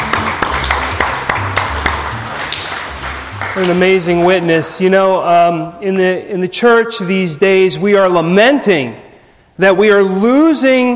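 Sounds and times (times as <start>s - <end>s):
audience applause: 0.0s - 4.4s
speech: 3.6s - 9.0s, 9.6s - 10.9s.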